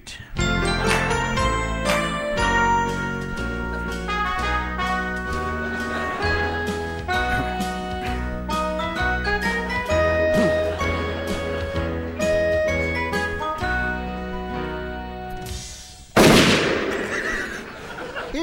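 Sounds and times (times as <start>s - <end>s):
jingling, tonal musical backing: 0.4s - 15.4s
laughter: 3.4s - 8.3s, 9.3s - 13.5s, 16.9s - 18.4s
gunshot effects from a comedy sketch: 16.1s - 17.8s.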